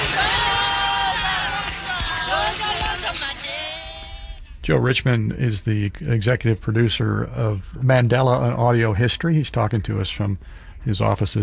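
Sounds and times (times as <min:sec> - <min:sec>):
large crowd shouting and cheering outdoors outside court: 0:00.0 - 0:04.4
speech: 0:04.7 - 0:11.4.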